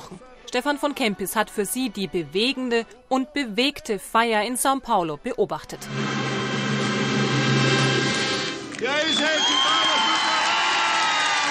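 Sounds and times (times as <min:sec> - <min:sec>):
speech: 0:00.5 - 0:06.3
large crowd roaring: 0:05.9 - 0:11.4
crowd cheering and whooping: 0:07.8 - 0:11.4.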